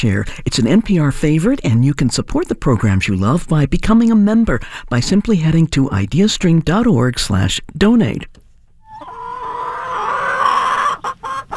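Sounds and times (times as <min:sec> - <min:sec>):
speech: 0:00.0 - 0:08.4
chicken squawking and clucking: 0:08.8 - 0:11.5.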